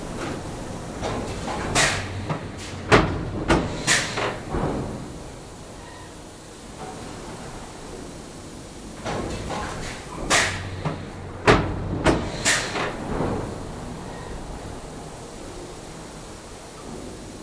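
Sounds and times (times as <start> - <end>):
pneumatic hiss: 0.0 - 11.3, 12.1 - 17.4
pneumatic factory press stamping: 0.2 - 5.2, 9.0 - 13.6.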